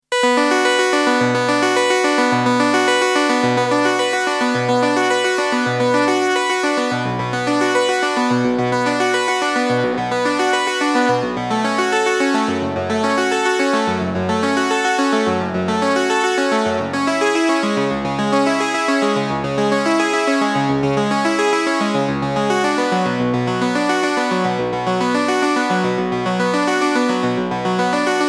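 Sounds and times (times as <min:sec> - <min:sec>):
Juno 60 arpeggio with Dimension D: 0:00.1 - 0:28.2.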